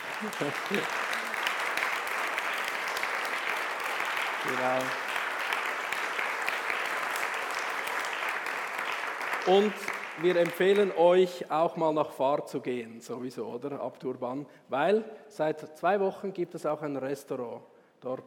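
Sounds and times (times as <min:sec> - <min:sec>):
audience applause: 0:00.0 - 0:11.0
speech: 0:00.2 - 0:01.1, 0:04.4 - 0:05.0, 0:09.4 - 0:18.2.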